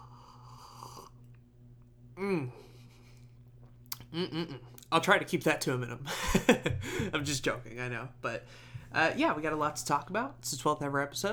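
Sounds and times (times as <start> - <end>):
slurping sip of hot chocolate: 0.0 - 1.4
low steady hum: 0.0 - 11.3
speech: 2.2 - 2.7, 4.2 - 11.3
laughter: 6.1 - 7.3.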